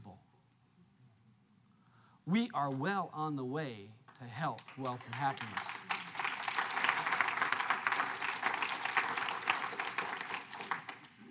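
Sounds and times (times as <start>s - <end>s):
speech: 2.3s - 6.0s
audience clapping: 4.0s - 11.2s.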